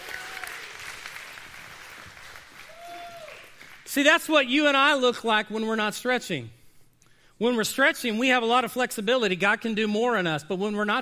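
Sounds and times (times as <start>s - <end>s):
crowd applauding: 0.0s - 3.9s
faint whistles and cheers: 2.6s - 3.6s
speech: 3.9s - 6.6s, 7.4s - 11.0s.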